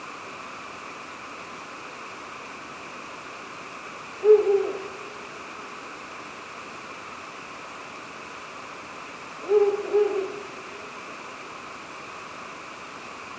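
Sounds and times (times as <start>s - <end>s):
steady hiss: 0.0s - 13.3s
Ural owl hooting: 4.2s - 5.4s, 9.4s - 10.9s.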